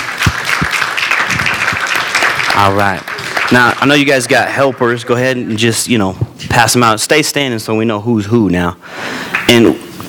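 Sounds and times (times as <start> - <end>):
crowd applauding: 0.0 - 5.0
speech: 2.6 - 9.8.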